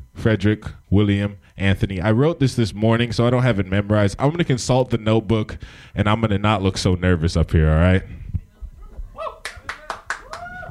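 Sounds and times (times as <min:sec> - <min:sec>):
speech: 0:00.2 - 0:08.3
sharp evenly spaced claps: 0:09.4 - 0:10.6.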